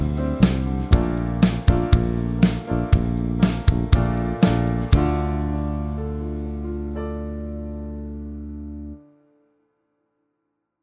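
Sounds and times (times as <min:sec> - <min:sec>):
backing track: 0:00.0 - 0:06.6.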